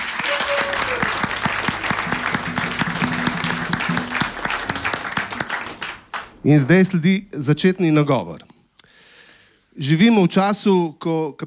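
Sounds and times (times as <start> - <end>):
studio audience applause: 0.0 - 6.6
speech: 6.4 - 8.5, 9.8 - 11.4.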